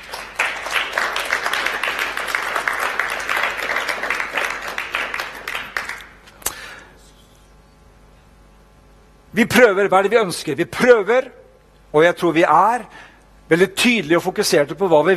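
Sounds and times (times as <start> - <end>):
audience applause: 0.0 - 6.2
speech: 9.4 - 15.1.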